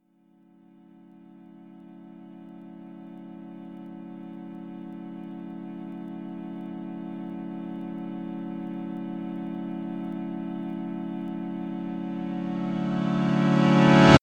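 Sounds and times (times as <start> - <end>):
long reversed D chord: 1.8 - 14.2.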